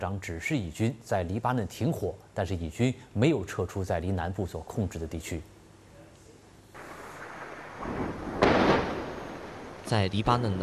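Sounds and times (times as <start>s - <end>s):
speech: 0.0s - 5.6s, 9.9s - 10.6s
large explosion: 6.8s - 10.5s.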